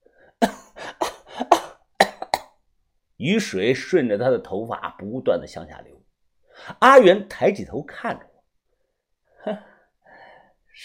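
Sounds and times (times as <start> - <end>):
repeated coughing: 0.4 - 2.6
speech: 3.2 - 6.0, 6.7 - 8.3, 9.4 - 9.7.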